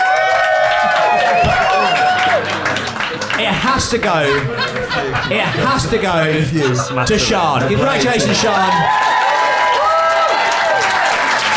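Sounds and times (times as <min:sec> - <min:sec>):
crowd cheers and whoops: 0:00.0 - 0:02.6, 0:08.3 - 0:11.5
audience applause: 0:00.0 - 0:05.8, 0:07.6 - 0:11.5
laughter: 0:00.9 - 0:09.1
speech: 0:03.8 - 0:09.1.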